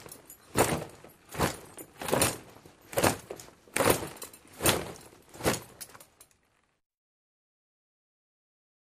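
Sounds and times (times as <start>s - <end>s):
group footsteps on ground: 0.0s - 6.1s.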